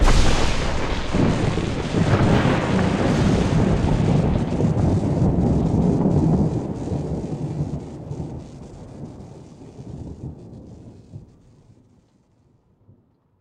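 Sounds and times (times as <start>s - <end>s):
intro explosion stinger: 0.0s - 8.2s.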